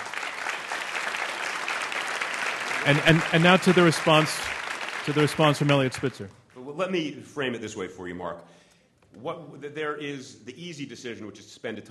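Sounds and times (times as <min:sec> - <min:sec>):
audience applause: 0:00.0 - 0:06.3
speech: 0:02.8 - 0:11.8.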